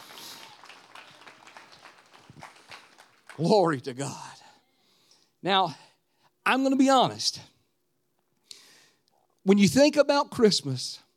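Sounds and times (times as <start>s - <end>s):
audience hand clapping: 0.0s - 3.9s
speech: 3.4s - 4.3s, 5.4s - 5.8s, 6.4s - 7.5s, 9.5s - 11.0s.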